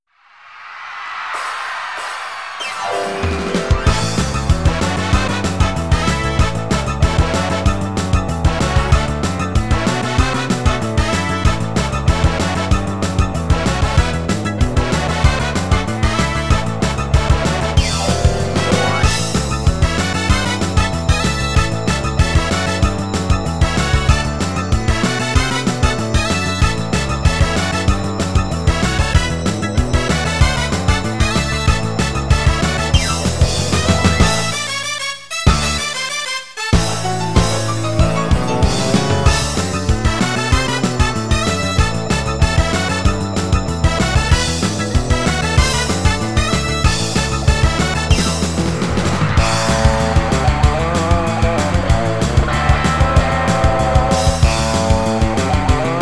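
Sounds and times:
rock and roll show music: 0:01.4 - 0:56.0.

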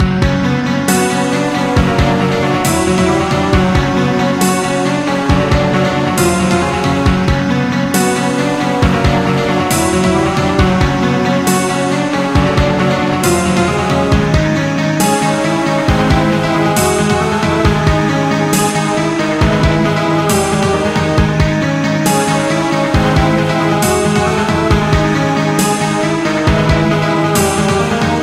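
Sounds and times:
serious scene music: 0:00.0 - 0:28.2.

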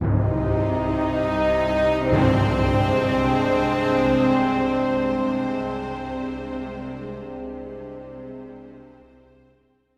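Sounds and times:
music segment: 0:00.0 - 0:07.6.

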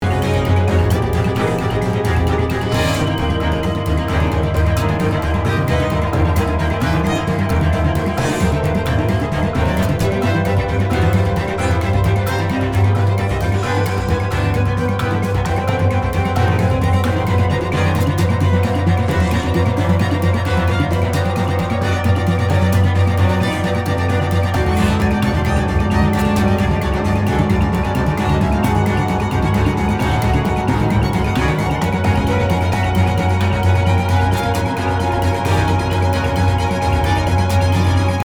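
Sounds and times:
action music loop: 0:00.0 - 0:38.2.

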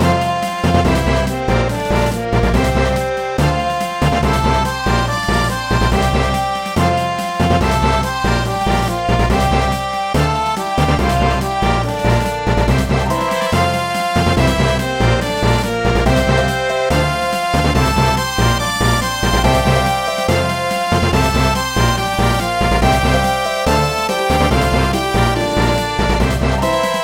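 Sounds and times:
fanfare: 0:00.0 - 0:27.0.

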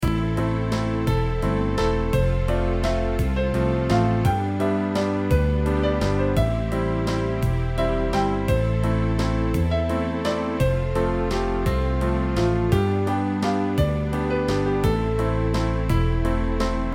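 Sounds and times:
waltz music: 0:00.0 - 0:16.9.

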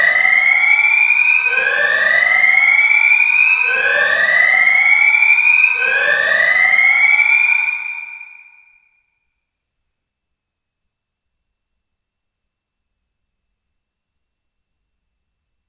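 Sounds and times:
Cortex alarm: 0:00.0 - 0:09.2.

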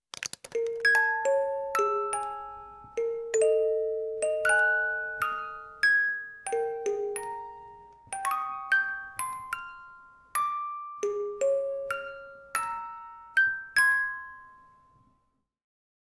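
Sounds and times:
music box: 0:00.5 - 0:15.0.

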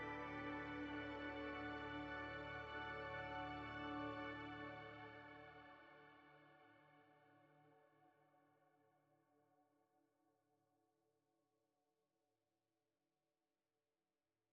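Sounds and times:
organ section of a piece of music: 0:00.0 - 0:05.4.

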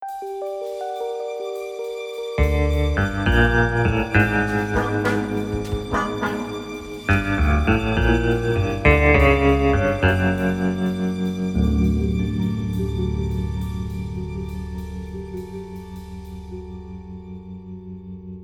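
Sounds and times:
music sting: 0:00.0 - 0:17.6.

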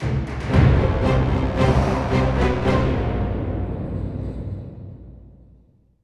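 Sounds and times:
hard fight music theme: 0:00.0 - 0:04.0.

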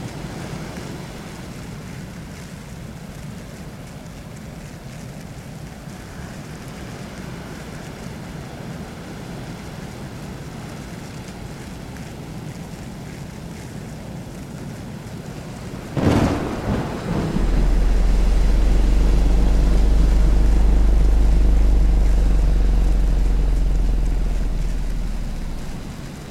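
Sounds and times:
molten ambience: 0:14.3 - 0:26.2.

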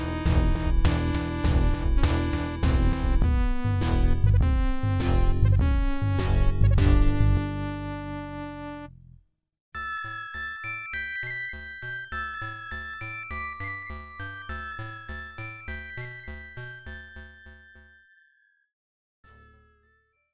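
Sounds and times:
FM synthesizer music: 0:00.0 - 0:09.2.

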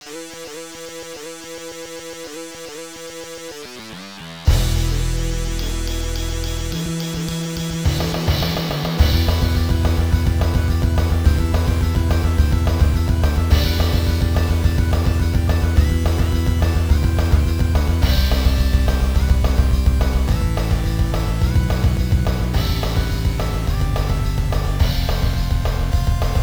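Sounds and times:
quiz fight background music: 0:03.9 - 0:26.4.

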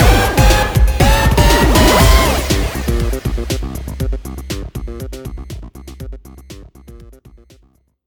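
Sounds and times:
game show sound: 0:00.0 - 0:03.6.

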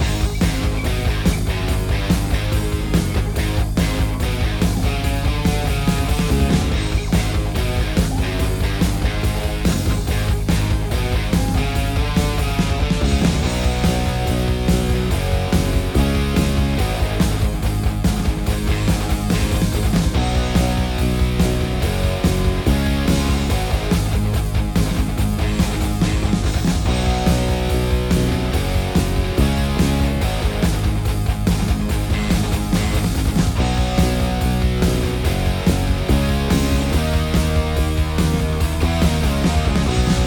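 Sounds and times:
music beat: 0:00.0 - 0:40.2.

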